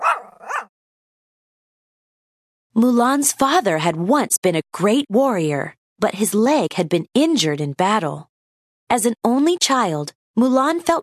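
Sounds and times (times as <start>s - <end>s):
family dog giving high-pitched yipping barks: 0.0s - 0.7s
speech: 2.8s - 8.3s, 8.9s - 11.0s.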